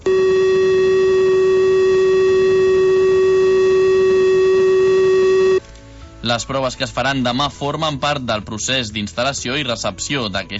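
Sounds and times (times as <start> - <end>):
emergency alert siren all-clear tone: 0.0 - 5.6
speech: 6.3 - 10.5.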